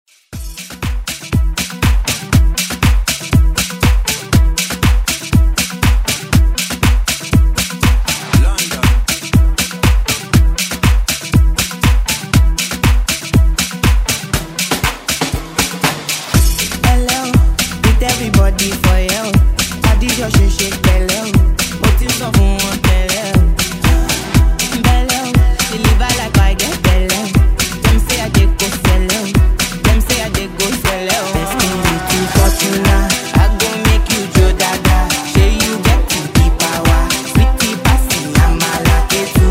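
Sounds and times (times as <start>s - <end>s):
afro house music: 0.4s - 39.4s.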